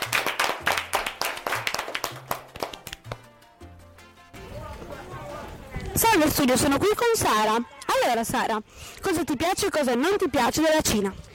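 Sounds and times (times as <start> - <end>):
applause: 0.0 - 3.4
speech: 6.0 - 11.2.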